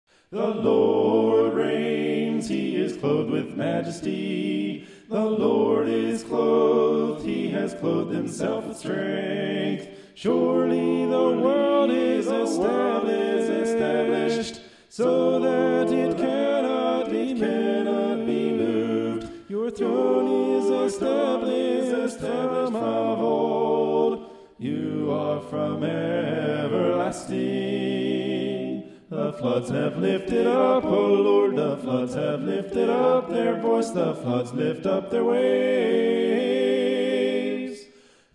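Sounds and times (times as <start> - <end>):
a cappella scripture song: 0.1 - 38.3.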